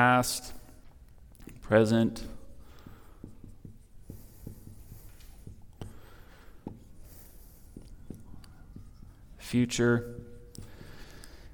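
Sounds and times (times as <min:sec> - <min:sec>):
speech: 0:00.0 - 0:00.6, 0:01.7 - 0:02.4, 0:09.5 - 0:10.2
pen strokes scratching as a table is drawn by hand: 0:02.7 - 0:11.3.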